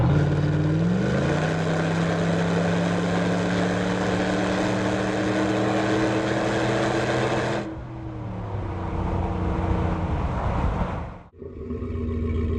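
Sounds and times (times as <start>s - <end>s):
Ford F-150 SVT Raptor: 0.0s - 12.5s.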